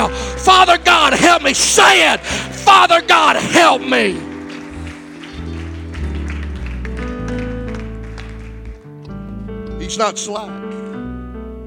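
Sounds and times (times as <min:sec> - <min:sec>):
speech: 0:00.5 - 0:04.3, 0:09.9 - 0:10.6
audience clapping hands: 0:00.8 - 0:09.2.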